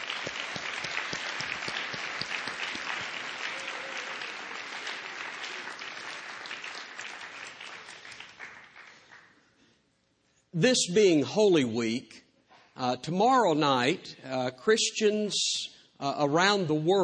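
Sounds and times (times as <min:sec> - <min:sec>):
audience applause: 0:00.0 - 0:09.4
speech: 0:10.6 - 0:12.2, 0:12.8 - 0:17.0.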